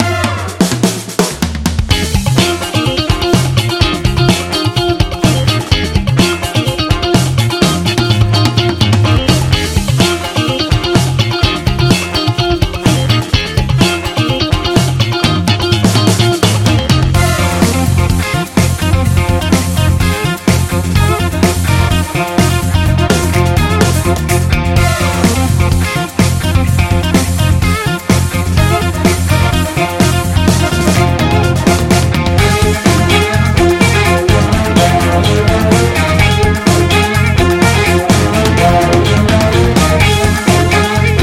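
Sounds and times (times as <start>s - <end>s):
funk beat: 0.0s - 41.2s.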